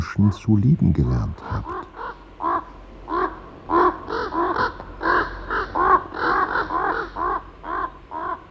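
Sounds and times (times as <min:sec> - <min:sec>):
speech: 0:00.0 - 0:01.9
raven cawing: 0:01.2 - 0:08.4.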